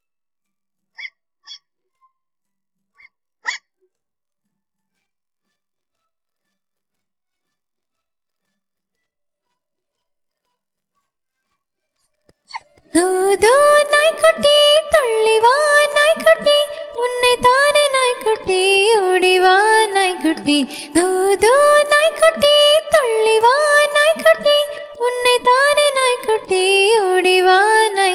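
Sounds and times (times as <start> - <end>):
Tamil children's rhyme vocals: 12.9 - 28.1.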